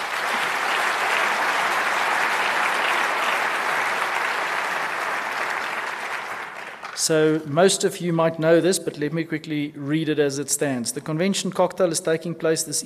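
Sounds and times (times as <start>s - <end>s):
audience applause: 0.0s - 7.1s
speech: 7.0s - 12.8s.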